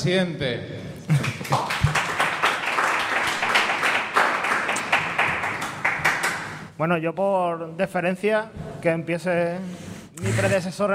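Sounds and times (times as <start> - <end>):
speech: 0.0 - 1.6, 6.8 - 10.9
audience applause: 1.1 - 6.7.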